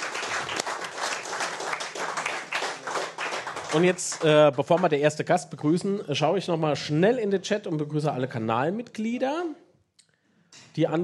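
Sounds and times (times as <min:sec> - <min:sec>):
audience applause: 0:00.0 - 0:05.0
speech: 0:03.7 - 0:09.6, 0:10.8 - 0:11.0.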